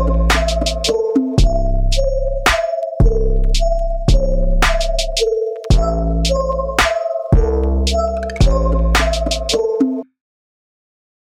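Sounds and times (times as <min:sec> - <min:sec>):
knocking drums: 0:00.3 - 0:01.7, 0:02.5 - 0:09.6.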